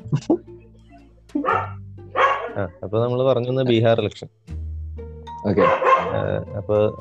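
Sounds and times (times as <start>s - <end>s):
speech: 0.1s - 0.5s, 2.6s - 4.4s, 5.4s - 6.9s
dog barking: 1.4s - 2.6s, 5.6s - 6.2s.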